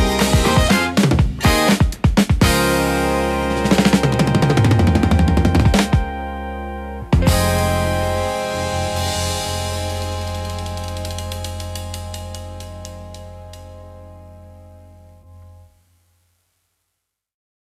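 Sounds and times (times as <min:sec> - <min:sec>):
siren beat: 0:00.0 - 0:13.7.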